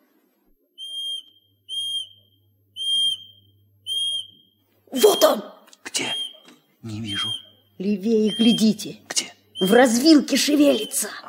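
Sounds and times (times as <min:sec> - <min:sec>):
whistle notes blown to call a bird: 0:00.8 - 0:07.6, 0:08.2 - 0:08.8, 0:09.6 - 0:11.1
speech: 0:04.9 - 0:06.1, 0:06.8 - 0:09.0, 0:09.6 - 0:11.2.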